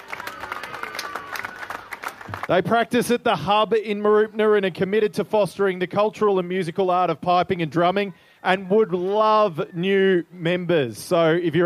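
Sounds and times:
audience applause: 0:00.0 - 0:02.8
speech: 0:02.5 - 0:11.6.

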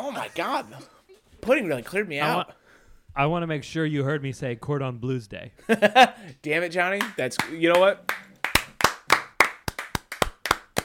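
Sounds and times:
speech: 0:00.2 - 0:08.2
two people clapping: 0:07.0 - 0:10.8.

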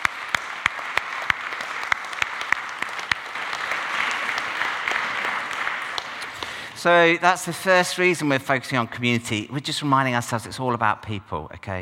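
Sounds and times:
audience applause: 0:00.0 - 0:07.1
speech: 0:06.8 - 0:11.8.

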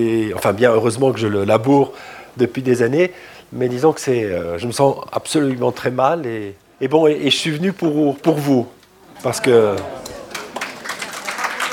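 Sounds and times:
speech: 0:00.0 - 0:10.0
audience applauding: 0:09.3 - 0:11.7.

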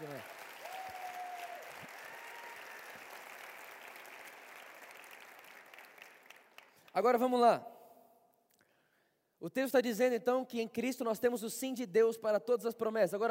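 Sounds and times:
audience applause: 0:00.0 - 0:06.8
speech: 0:07.0 - 0:07.7, 0:09.5 - 0:13.3.

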